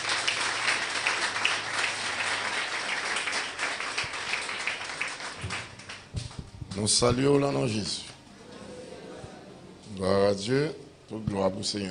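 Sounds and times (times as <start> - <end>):
audience applause: 0.0 - 6.1
speech: 6.8 - 8.0, 10.0 - 11.9.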